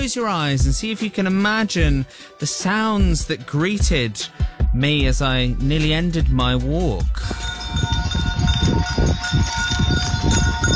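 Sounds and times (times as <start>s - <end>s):
speech: 0.0s - 7.9s, 9.0s - 10.7s
bells on the hills: 7.2s - 10.7s
chimes on the hills: 7.2s - 10.7s.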